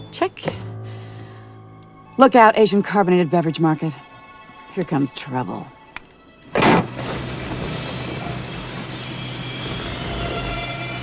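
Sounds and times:
speech: 0.1s - 0.6s, 2.2s - 4.1s, 4.8s - 5.8s
garage door lifting: 6.6s - 11.0s.

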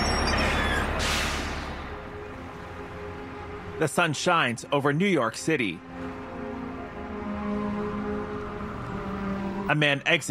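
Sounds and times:
bus pulling up with air brakes: 0.0s - 3.8s, 5.9s - 9.8s
speech: 3.8s - 6.2s, 9.7s - 10.2s.

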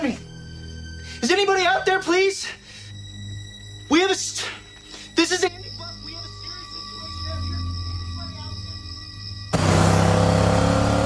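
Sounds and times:
speech: 1.2s - 2.6s, 4.0s - 4.6s, 5.2s - 6.0s
pickup truck engine drone on a road: 9.5s - 11.0s
road noise: 9.5s - 11.0s.

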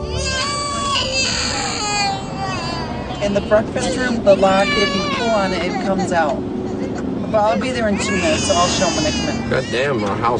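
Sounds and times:
baby crying in the backseat: 0.0s - 10.2s
woman talking on her phone: 3.2s - 6.4s, 7.3s - 9.4s
speech: 3.3s - 6.6s, 7.3s - 10.3s.

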